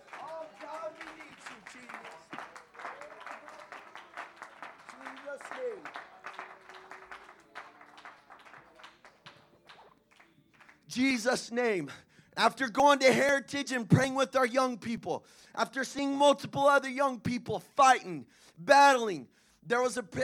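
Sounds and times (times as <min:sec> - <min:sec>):
crowd clapping hands: 0:00.0 - 0:11.4
speech: 0:10.9 - 0:20.2.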